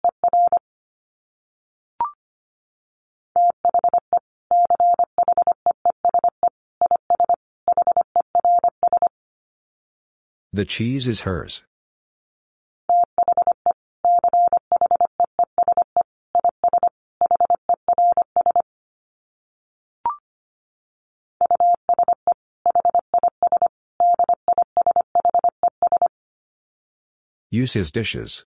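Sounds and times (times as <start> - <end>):
Morse code tones at 25 wpm: 3.4 - 9.1, 12.9 - 18.6, 21.4 - 26.1
speech: 10.6 - 11.7, 27.5 - 28.5.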